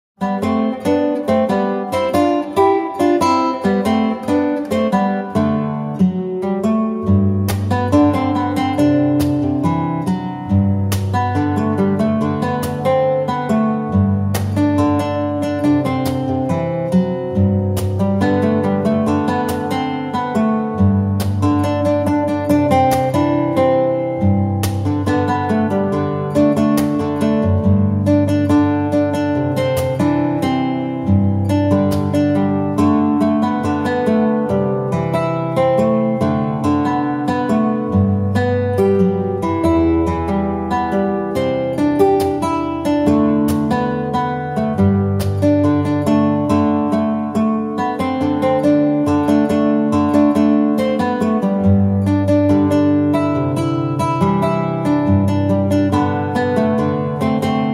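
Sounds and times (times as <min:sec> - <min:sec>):
fingerstyle guitar: 0:00.0 - 0:57.7.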